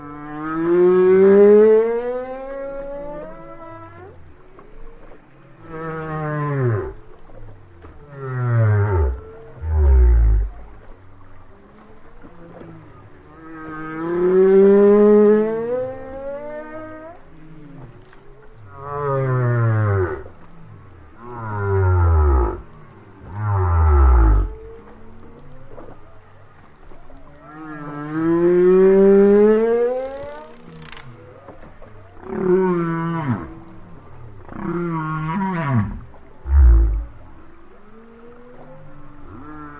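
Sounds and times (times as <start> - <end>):
whale song: 0.0 - 39.7.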